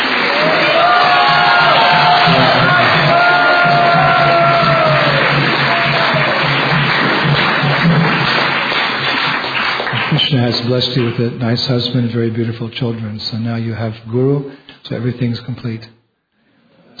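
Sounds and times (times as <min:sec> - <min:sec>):
audience applause: 0:00.0 - 0:11.4
speech: 0:10.5 - 0:16.0.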